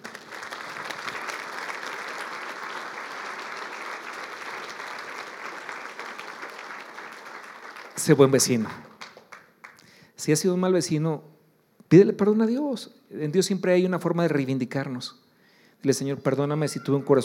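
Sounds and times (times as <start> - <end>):
audience applause: 0.0 - 9.8
speech: 8.0 - 8.9, 10.3 - 15.2, 15.8 - 17.2.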